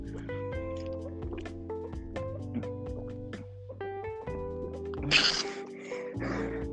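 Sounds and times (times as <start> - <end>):
steady music: 0.0 - 6.7
person drinking water: 5.0 - 5.5.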